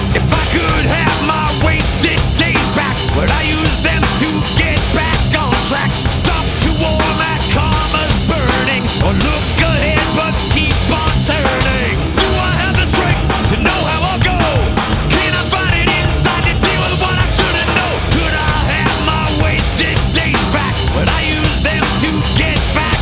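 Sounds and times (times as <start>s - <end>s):
frantic ambience: 0.0s - 23.0s.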